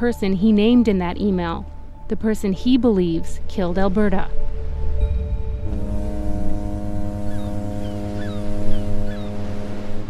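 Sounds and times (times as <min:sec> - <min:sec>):
speech: 0:00.0 - 0:04.4
low rumble: 0:03.8 - 0:08.0
ferry foghorn blast: 0:05.2 - 0:10.0.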